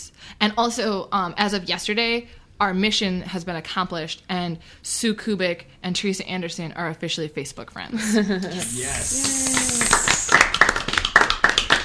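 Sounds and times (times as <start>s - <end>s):
speech: 0.0s - 9.5s
person exclaiming cheerfully: 8.5s - 10.4s
people clapping: 8.5s - 11.8s.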